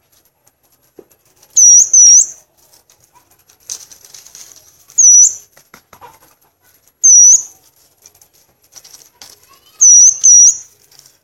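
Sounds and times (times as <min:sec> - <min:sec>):
faint soft rustling: 0:00.0 - 0:01.6, 0:02.3 - 0:09.8, 0:10.6 - 0:11.2
Violaceous euphonia high clear whistled notes: 0:01.6 - 0:02.4, 0:05.0 - 0:05.4, 0:07.0 - 0:07.5, 0:09.8 - 0:10.7.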